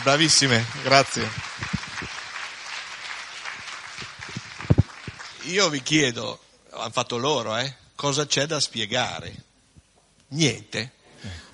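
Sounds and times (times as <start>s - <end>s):
speech: 0.0s - 1.5s, 5.5s - 9.5s, 10.3s - 11.4s
audience applause: 0.0s - 6.0s.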